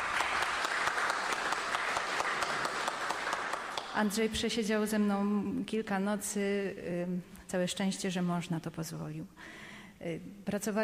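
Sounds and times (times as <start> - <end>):
crowd applauding: 0.0 - 4.1
speech: 4.0 - 10.8.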